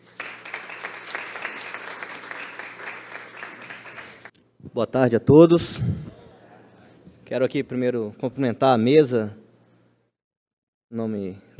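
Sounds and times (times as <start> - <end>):
audience applause: 0.0 - 4.3
speech: 4.7 - 6.2, 7.3 - 9.4, 10.9 - 11.5.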